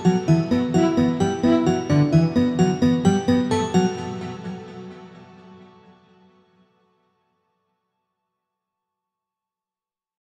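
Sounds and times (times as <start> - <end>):
horns playing a theme: 0.0 - 3.1.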